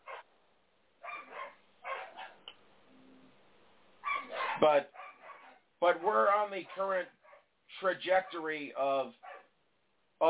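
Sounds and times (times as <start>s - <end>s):
dog yelping: 0.0s - 0.2s, 1.0s - 2.4s, 4.0s - 5.6s, 9.2s - 9.5s
dogs fighting and barking: 0.0s - 0.3s, 1.0s - 3.3s, 4.0s - 5.8s, 6.7s - 7.5s, 9.2s - 9.6s
speech: 4.6s - 5.0s, 5.8s - 9.3s.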